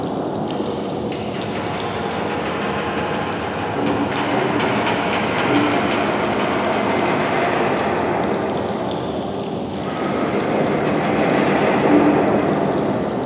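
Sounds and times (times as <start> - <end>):
sewer ambience: 0.1 - 13.1.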